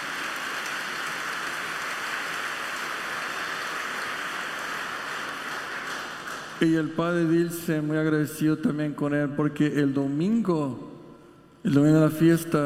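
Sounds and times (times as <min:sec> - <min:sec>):
audience applause: 0:00.0 - 0:06.6
speech: 0:06.6 - 0:10.9, 0:11.6 - 0:12.6.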